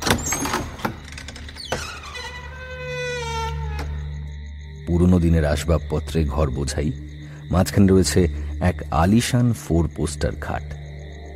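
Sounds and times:
huge heavy finely carved door creaking as pushed open: 0.0 - 4.5
speech: 4.9 - 10.8.

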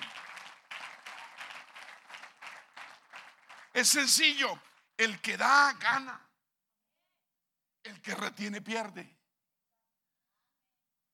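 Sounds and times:
audience applause: 0.0 - 4.8
speech: 3.8 - 6.3, 8.0 - 9.2.

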